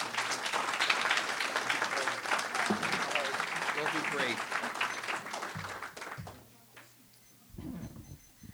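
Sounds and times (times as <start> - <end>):
audience applause welcoming a speaker: 0.0 - 6.4.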